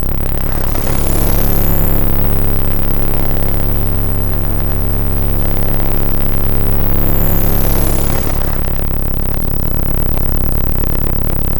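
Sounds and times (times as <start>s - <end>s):
ambience: 0.0s - 11.5s.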